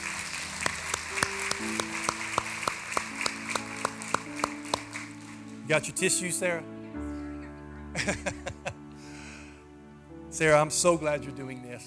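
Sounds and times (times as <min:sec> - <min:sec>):
crowd clapping on an even beat: 0:00.0 - 0:06.0
sustained musical tones: 0:00.0 - 0:11.5
speech: 0:05.7 - 0:06.8, 0:08.0 - 0:08.5, 0:10.4 - 0:11.8
laughter: 0:07.4 - 0:08.9.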